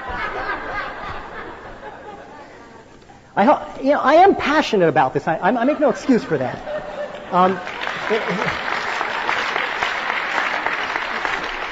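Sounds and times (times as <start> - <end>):
laughter: 0.0 - 3.0, 5.6 - 11.7
speech: 3.4 - 6.7, 7.3 - 8.7
audience applause: 7.0 - 11.7.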